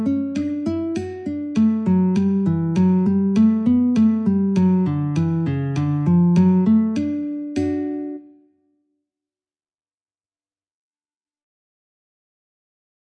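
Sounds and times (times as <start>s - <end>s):
guitar in D: 0.0s - 8.6s.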